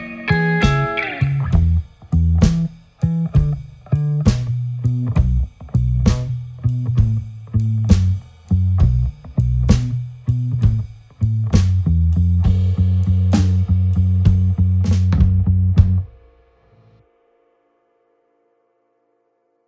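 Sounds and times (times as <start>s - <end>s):
blues music in B: 0.0s - 17.0s.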